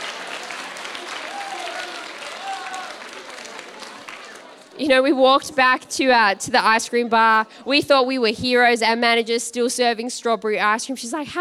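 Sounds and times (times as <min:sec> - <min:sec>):
crowd applause: 0:00.0 - 0:04.9
voices whooping: 0:00.8 - 0:04.6
speech: 0:04.8 - 0:11.3.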